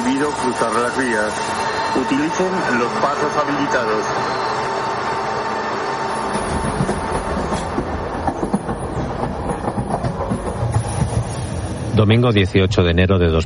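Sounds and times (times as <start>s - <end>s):
Alvia train departing railway station: 0.0s - 13.4s
speech: 0.2s - 4.6s, 12.0s - 13.4s.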